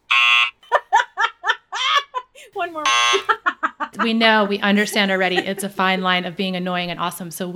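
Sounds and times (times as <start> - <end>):
harsh buzzer tone: 0.0 - 0.7, 2.8 - 3.4
laughter: 0.6 - 2.5, 3.1 - 6.0
speech: 2.6 - 3.4, 4.0 - 7.5.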